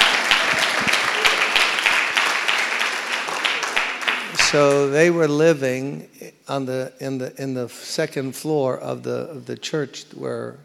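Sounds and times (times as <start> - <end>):
church congregation applauding: 0.0 - 5.2
speech: 4.5 - 10.6.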